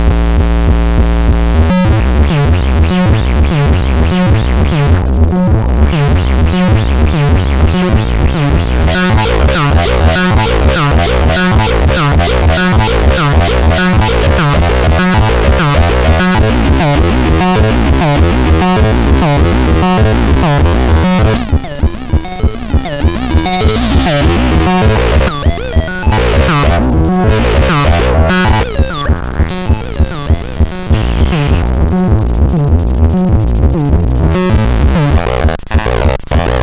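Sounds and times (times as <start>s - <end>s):
acid machine: 0.0s - 36.6s.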